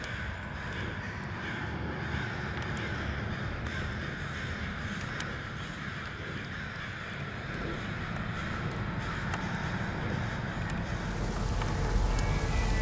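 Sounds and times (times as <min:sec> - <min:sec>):
forest ambience: 0:00.0 - 0:12.8.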